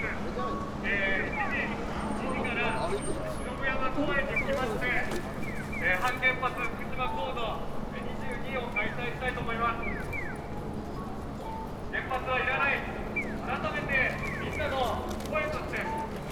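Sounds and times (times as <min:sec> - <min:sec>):
station road ambience in Fukushima: 0:00.0 - 0:16.3.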